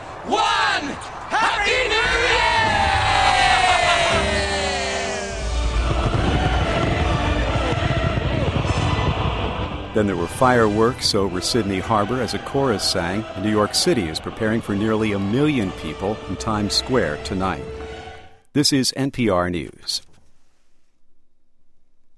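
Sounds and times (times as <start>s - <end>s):
huge crowd roaring with cheers, yells and whistles: 0.3s - 9.9s
speech: 10.0s - 17.8s, 18.5s - 20.1s.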